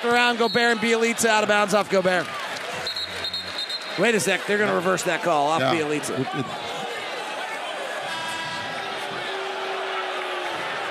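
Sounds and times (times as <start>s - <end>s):
speech: 0.0s - 2.4s, 4.0s - 6.7s
arena crowd reacting with disapproval: 4.2s - 10.8s.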